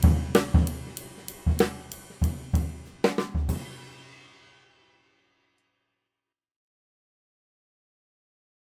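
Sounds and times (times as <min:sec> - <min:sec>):
Paiste Mello cymbal: 0:00.0 - 0:05.3.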